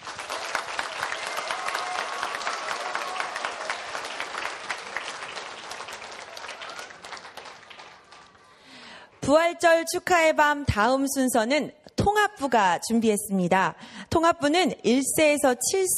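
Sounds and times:
audience applause: 0:00.0 - 0:08.8
speech: 0:09.3 - 0:15.9.

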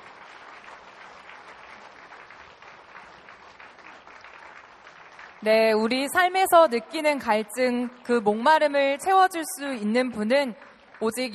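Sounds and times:
church audience applause: 0:00.0 - 0:05.5
speech: 0:05.4 - 0:11.3.

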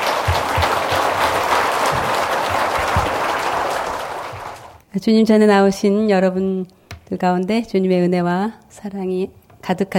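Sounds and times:
audience applause welcoming a speaker: 0:00.0 - 0:04.8
speech: 0:05.0 - 0:09.9.

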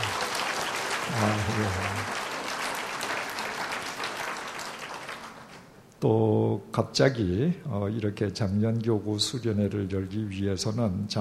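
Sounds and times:
audience applause: 0:00.0 - 0:05.7
speech: 0:01.2 - 0:02.1, 0:06.0 - 0:11.2.

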